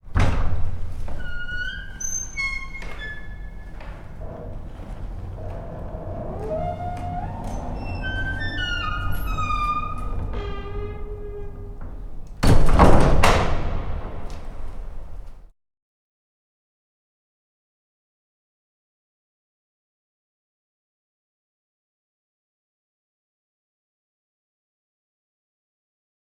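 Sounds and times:
cathedral entrance door: 0:00.0 - 0:15.5.

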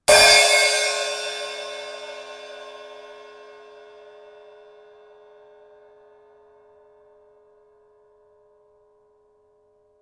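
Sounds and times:
cymbal hard hit: 0:00.1 - 0:03.6.

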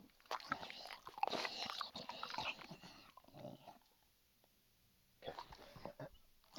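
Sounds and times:
dog chewing food: 0:00.2 - 0:03.1.

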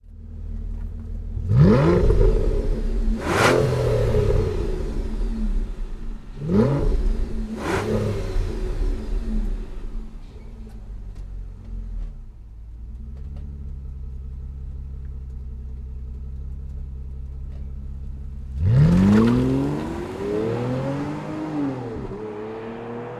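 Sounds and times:
Aston car pulling away: 0:00.2 - 0:23.1.

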